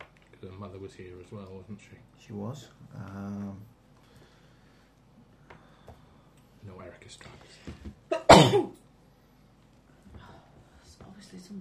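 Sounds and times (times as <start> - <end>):
speech: 0.5 - 3.8, 6.7 - 8.8, 11.3 - 11.5
person sneezing: 8.1 - 8.7.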